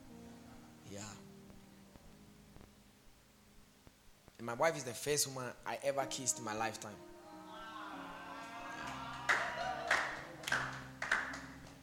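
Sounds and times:
speech: 4.4s - 7.2s
hand clapping: 8.8s - 11.8s.

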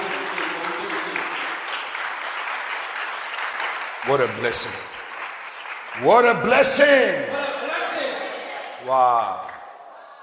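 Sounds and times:
audience clapping hands: 0.0s - 7.2s
speech: 4.1s - 4.9s, 6.0s - 7.5s, 8.9s - 9.4s.

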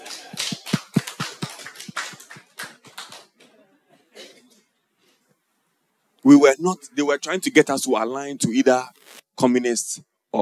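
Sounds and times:
audience clapping: 0.0s - 3.6s
speech: 6.2s - 10.3s.

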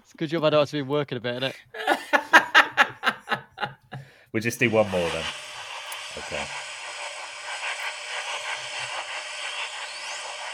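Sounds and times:
speech: 0.1s - 2.2s, 4.3s - 5.4s, 6.2s - 6.6s
laughter: 1.7s - 4.0s
steam cleaner steaming clothes: 4.4s - 10.5s.

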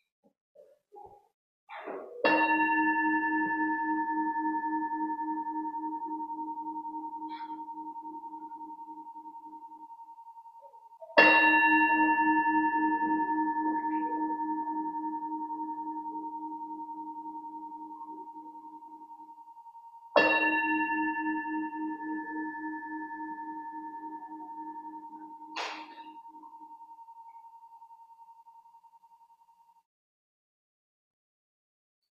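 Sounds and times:
bell ringing: 2.2s - 28.0s.

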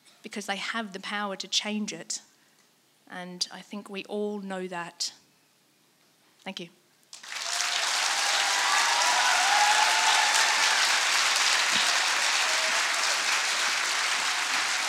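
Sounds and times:
speech: 0.2s - 2.3s, 3.1s - 5.2s, 6.4s - 6.8s
audience applause after a speech: 7.2s - 14.8s.

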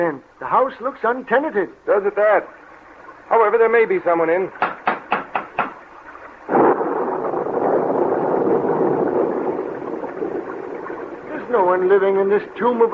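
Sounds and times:
speech: 0.0s - 2.6s, 3.3s - 4.6s, 11.6s - 12.9s
thunder in a storm: 6.5s - 11.8s.

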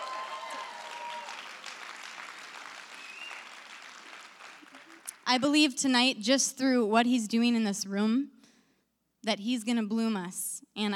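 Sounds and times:
audience clapping: 0.0s - 5.3s
speech: 5.3s - 8.4s, 9.2s - 10.9s.

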